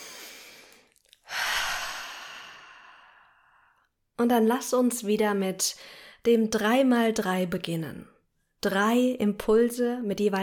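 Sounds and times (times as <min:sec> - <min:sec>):
deep breath in and out during a guided reflection exercise: 0:00.0 - 0:03.8
speech: 0:04.2 - 0:10.4.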